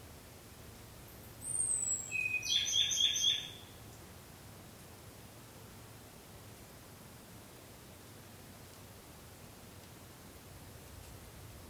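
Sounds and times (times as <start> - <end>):
Ryukyu robin song: 1.4 - 3.7.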